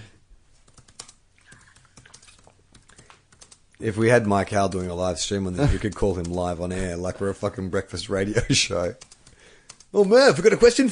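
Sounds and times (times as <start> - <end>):
message typed on a computer keyboard: 0.6 - 3.7, 5.6 - 6.6, 8.8 - 10.0
speech: 3.8 - 9.1, 9.9 - 10.8.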